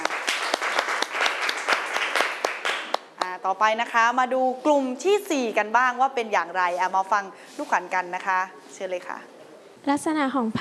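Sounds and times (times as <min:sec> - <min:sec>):
audience applause: 0:00.0 - 0:03.0
speech: 0:03.5 - 0:10.6.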